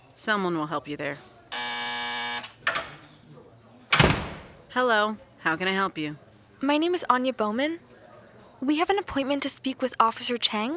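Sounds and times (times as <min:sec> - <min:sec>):
speech: 0:00.2 - 0:01.3, 0:04.7 - 0:07.9, 0:08.6 - 0:10.7
door entry buzzer: 0:01.5 - 0:02.6
door latch clack: 0:03.9 - 0:04.6.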